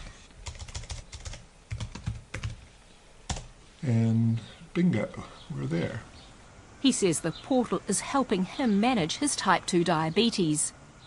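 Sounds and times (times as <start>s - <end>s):
computer keyboard keys clicking as an email address and password are typed: 0.0s - 2.6s, 3.3s - 3.5s
speech: 3.8s - 6.1s, 6.8s - 10.8s.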